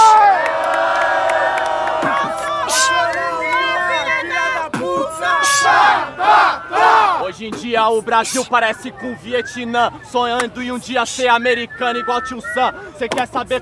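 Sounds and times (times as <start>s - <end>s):
crowd cheering, whooping and shouting at a rap battle: 0.0s - 7.4s
speech: 7.4s - 13.5s.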